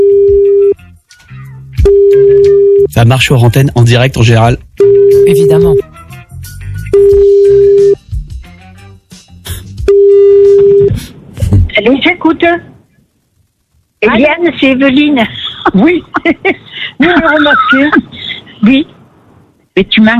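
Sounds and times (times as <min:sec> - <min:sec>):
telephone ringing tone from a call placed live on the radio: 0:00.0 - 0:00.7, 0:01.8 - 0:02.9, 0:04.8 - 0:05.8, 0:06.9 - 0:08.0, 0:09.9 - 0:10.9
speech: 0:03.0 - 0:05.9, 0:11.8 - 0:12.7, 0:14.0 - 0:19.0, 0:19.8 - 0:20.1.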